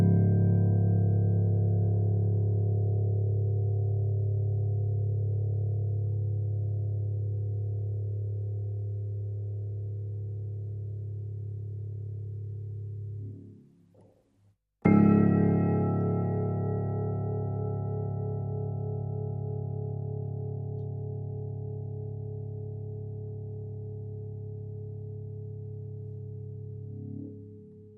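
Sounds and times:
piano: 0.0 - 14.1, 14.8 - 27.9
bells: 14.9 - 21.6.

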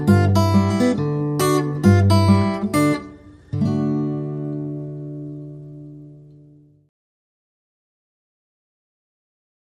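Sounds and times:
relaxed fingerpicked guitar: 0.0 - 6.9.

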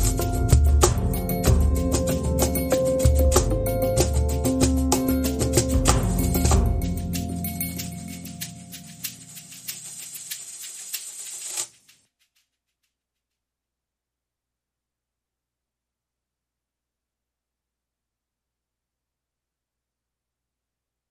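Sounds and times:
percussion: 0.0 - 13.0.

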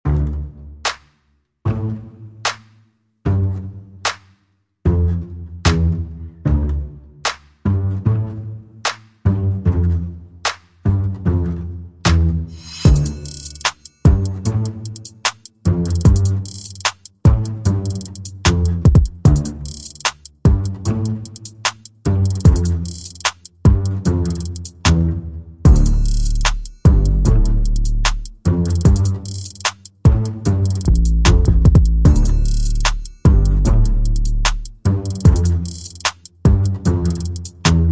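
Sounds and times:
bass: 0.0 - 1.0, 1.7 - 2.6, 3.2 - 4.2, 4.8 - 37.8
drums: 12.6 - 25.0, 25.7 - 37.8.

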